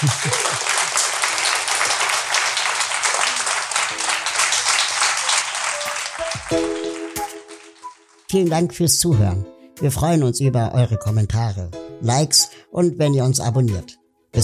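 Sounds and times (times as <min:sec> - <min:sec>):
speech: 0:00.0 - 0:00.7, 0:08.3 - 0:14.4
laughter: 0:00.0 - 0:03.8
crowd applauding for a guest: 0:00.0 - 0:08.4.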